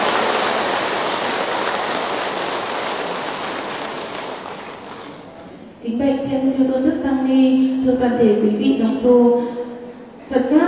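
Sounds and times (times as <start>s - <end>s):
crowd, long loud applause: 0.0s - 5.3s
speech: 5.8s - 9.6s.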